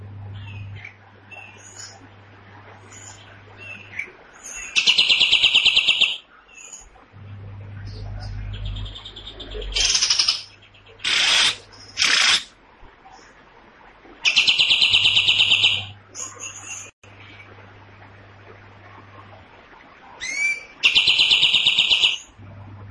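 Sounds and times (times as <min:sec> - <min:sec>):
cream-vented bulbul rattling song: 0:02.9 - 0:06.9, 0:07.9 - 0:12.5, 0:14.2 - 0:16.9, 0:20.2 - 0:22.4.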